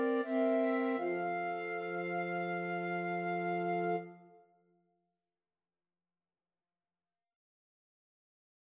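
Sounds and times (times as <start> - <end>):
string quartet playing: 0.0 - 4.0.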